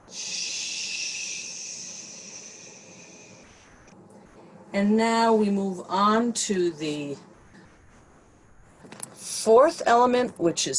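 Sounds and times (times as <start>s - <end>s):
long airy breath during a guided breathing exercise: 0.0s - 3.8s
speech: 4.7s - 7.3s, 9.5s - 10.7s.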